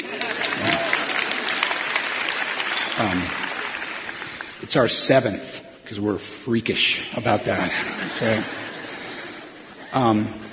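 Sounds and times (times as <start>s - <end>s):
laughter: 0.0s - 1.6s, 7.4s - 10.5s
audience clapping: 0.0s - 5.0s
speech: 3.0s - 3.4s, 4.6s - 8.6s, 9.9s - 10.4s.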